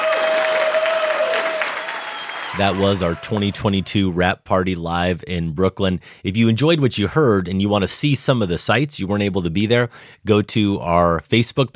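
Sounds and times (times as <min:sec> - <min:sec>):
round of applause: 0:00.0 - 0:03.9
speech: 0:02.6 - 0:11.7.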